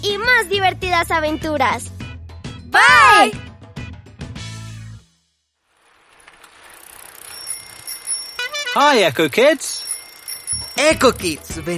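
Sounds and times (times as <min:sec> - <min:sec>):
speech: 0:00.0 - 0:01.9, 0:02.7 - 0:03.5, 0:08.8 - 0:09.8, 0:10.8 - 0:11.7
tandem bicycle pedaling: 0:05.7 - 0:11.7
bicycle bell: 0:06.8 - 0:11.7.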